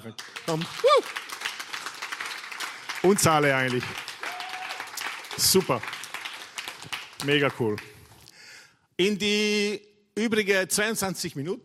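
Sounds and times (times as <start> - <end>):
speech: 0.0 - 1.2, 3.0 - 4.0, 5.4 - 6.0, 7.2 - 7.9, 9.0 - 11.6
audience applause: 0.0 - 8.2.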